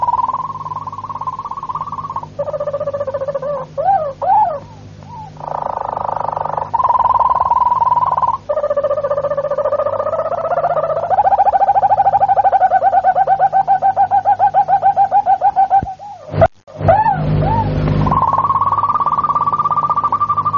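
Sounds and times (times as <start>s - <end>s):
Harz Roller canary song: 0.0s - 20.5s.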